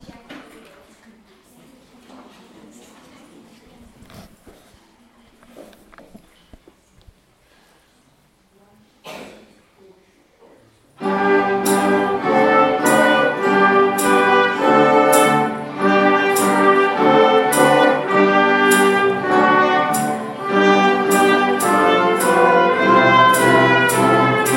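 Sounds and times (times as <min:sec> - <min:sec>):
concert music: 0:11.0 - 0:24.5.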